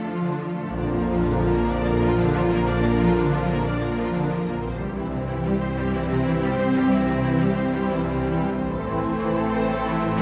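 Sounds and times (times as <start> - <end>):
long arpeggio with melody: 0.1 - 10.2.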